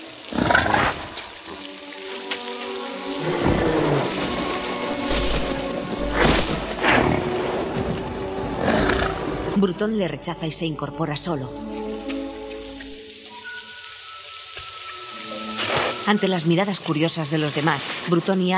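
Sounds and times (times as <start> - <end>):
rain hissing: 0.0 - 18.5
low growling animal roars: 0.3 - 1.2, 3.2 - 9.6
speech: 9.6 - 11.8, 16.1 - 18.5.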